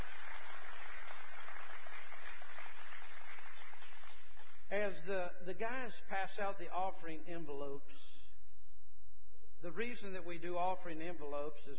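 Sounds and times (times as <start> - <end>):
crowd clapping: 0.0 - 4.7
speech: 4.7 - 8.2, 9.6 - 11.7.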